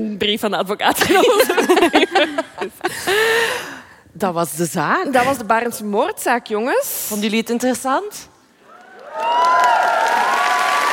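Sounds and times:
speech: 0.0 - 8.3, 9.2 - 10.3
laughter: 1.0 - 3.5
live audience applause: 8.8 - 10.9.

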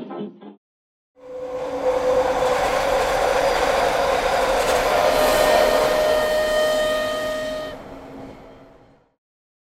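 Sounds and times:
train rumbling on rails: 1.2 - 9.1
whistle-like tones: 1.3 - 8.9.

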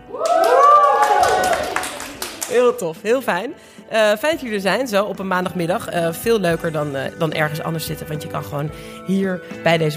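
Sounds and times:
live audience cheering and applauding: 0.0 - 2.7
speech: 2.6 - 9.9.

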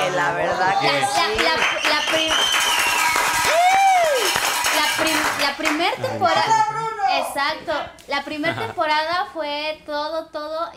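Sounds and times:
speech: 0.2 - 2.6, 5.5 - 10.7
audience applause: 0.8 - 6.0
person whooping: 3.4 - 4.4.

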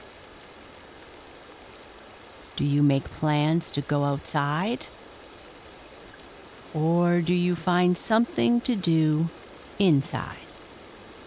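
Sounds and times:
rain falling: 0.0 - 11.2
speech: 2.6 - 5.0, 6.7 - 10.4.

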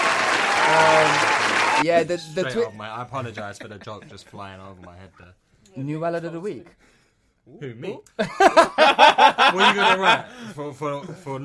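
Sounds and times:
applause: 0.0 - 1.8
laughter: 0.7 - 5.3, 8.2 - 10.5
speech: 0.7 - 11.4.

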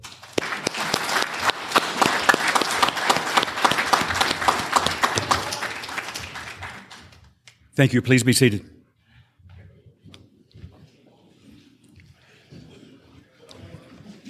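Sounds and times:
audience applause: 0.0 - 7.3
speech: 7.8 - 8.8.

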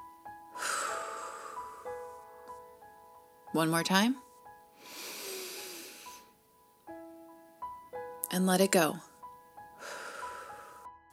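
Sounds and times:
deep breath during a guided breathing exercise: 0.6 - 2.2, 4.8 - 6.4, 9.8 - 11.0
speech: 3.5 - 4.2, 8.4 - 9.1.

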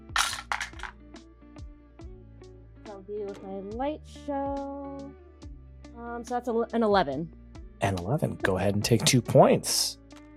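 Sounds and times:
dice being rolled on a table: 0.0 - 1.0
speech: 3.0 - 5.2, 6.0 - 10.0.

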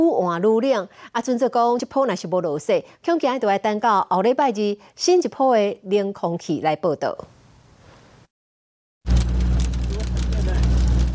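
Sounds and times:
speech: 0.0 - 7.4
hail pellets hitting car sheet metal: 9.1 - 11.1.

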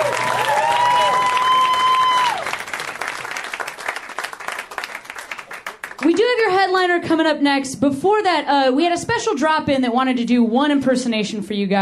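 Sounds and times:
high whoop or whistle: 0.0 - 2.6
audience applause: 0.0 - 6.2
speech: 6.6 - 11.8.

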